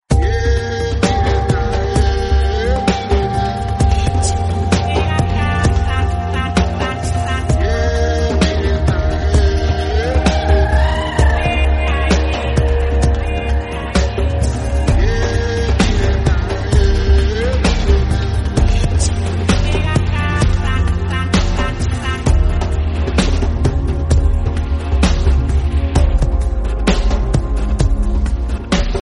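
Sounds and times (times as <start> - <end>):
African dream pop ringtone: 0.1 - 28.0.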